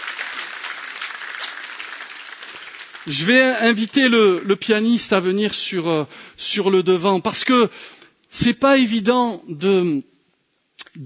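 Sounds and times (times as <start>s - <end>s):
church congregation clapping to acclaim Jesus: 0.0s - 4.8s
speech: 3.0s - 10.1s, 10.8s - 11.0s.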